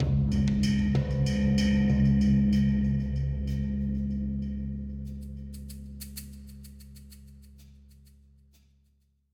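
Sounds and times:
cave percussion: 0:00.0 - 0:09.1.

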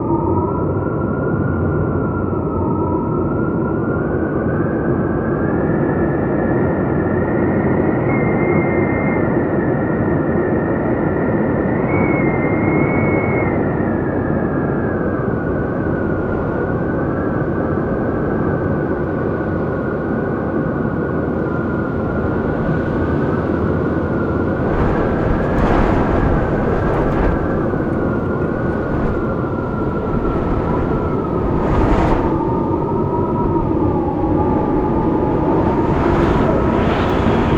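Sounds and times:
wind ambience: 0:00.0 - 0:37.5.

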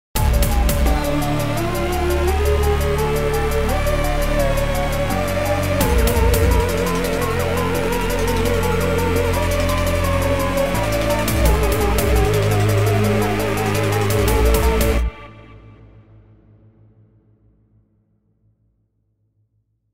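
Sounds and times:
rising riser effect: 0:00.2 - 0:15.5.

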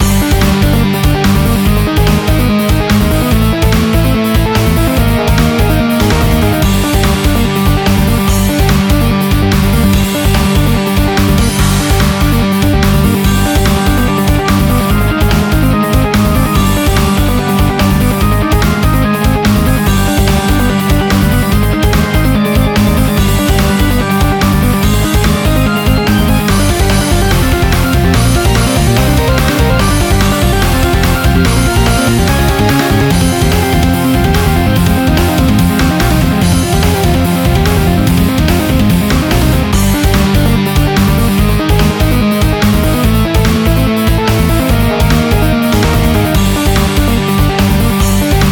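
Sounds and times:
boss fight music: 0:00.0 - 0:48.5.

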